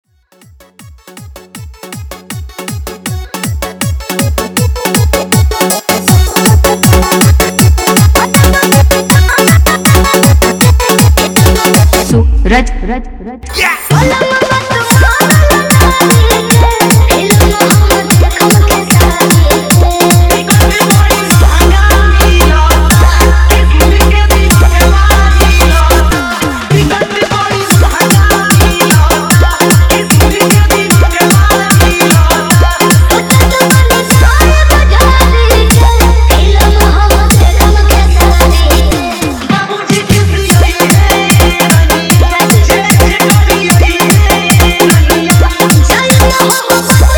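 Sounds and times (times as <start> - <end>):
Bhojpuri DJ remix song: 0.0 - 47.1.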